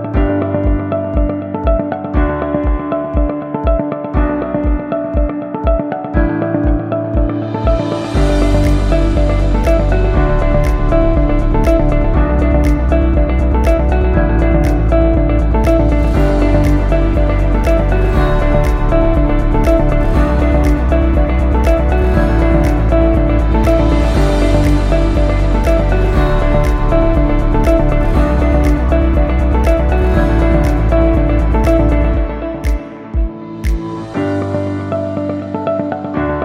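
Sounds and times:
education school music loop: 0:00.2 - 0:36.3.

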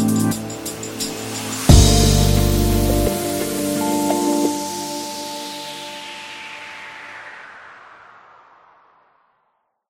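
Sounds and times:
luxury rhythm and blues music: 0:00.0 - 0:06.8.

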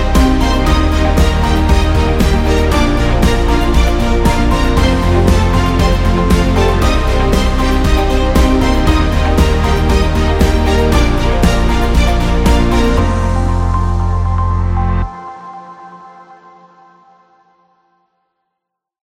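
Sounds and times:
motivational rock music: 0:00.0 - 0:15.0.

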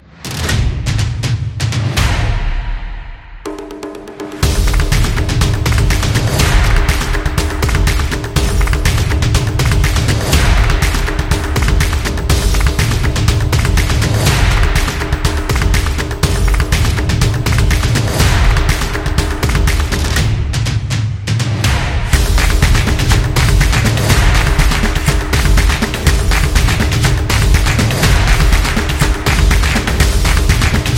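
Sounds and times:
energetic football samba percussion background music: 0:00.3 - 0:30.9.

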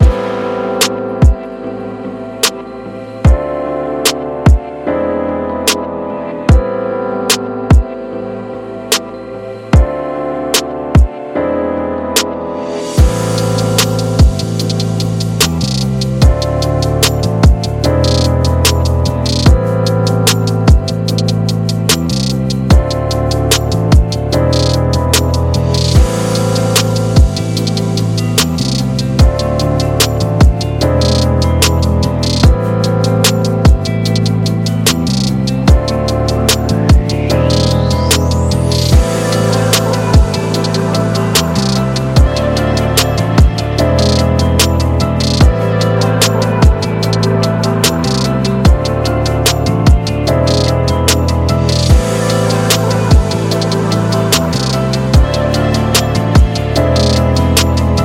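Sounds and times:
chill soul music: 0:00.0 - 0:58.0.

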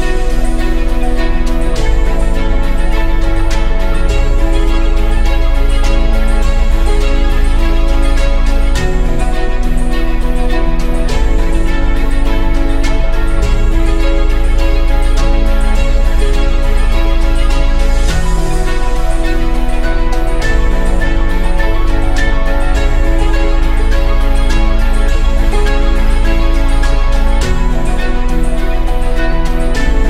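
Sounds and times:
documentary piano music: 0:00.0 - 0:30.0.

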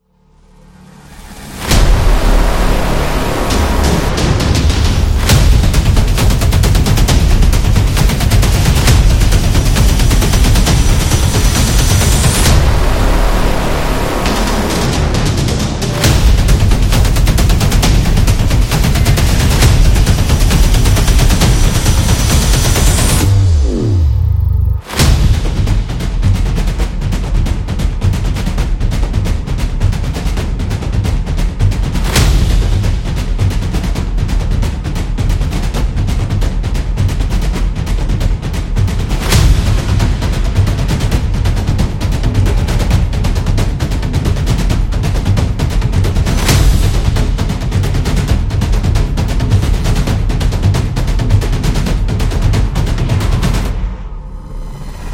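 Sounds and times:
trailer percussion: 0:00.0 - 0:55.1.

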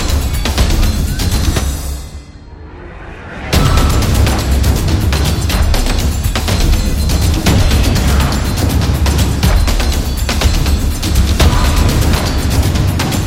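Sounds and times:
Japanese taiko drums, epic: 0:00.0 - 0:02.1, 0:03.5 - 0:13.2.

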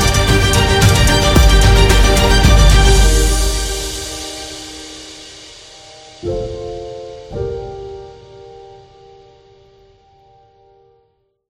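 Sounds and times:
epic motivational beat: 0:00.0 - 0:06.1.

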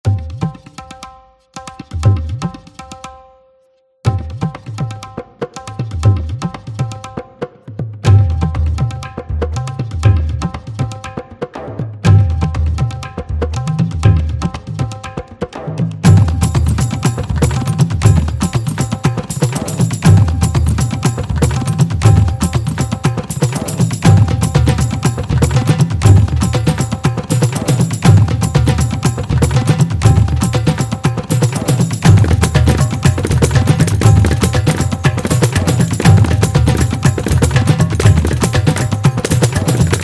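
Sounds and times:
Indian percussion: 0:00.0 - 0:40.0.

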